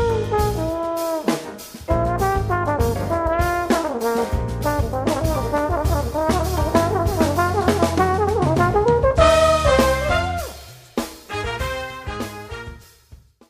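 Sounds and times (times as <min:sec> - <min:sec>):
trombone solo: 0:00.0 - 0:13.0.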